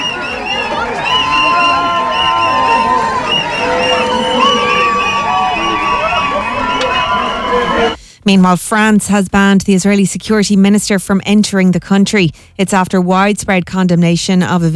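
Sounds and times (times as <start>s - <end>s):
crowd cheering at an airport arrivals area: 0.0s - 8.0s
speech: 8.3s - 14.7s.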